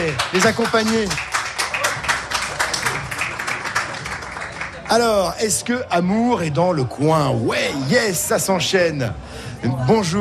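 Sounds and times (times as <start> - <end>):
audience clapping: 0.0 - 5.4
speech: 0.1 - 1.3, 4.9 - 10.1.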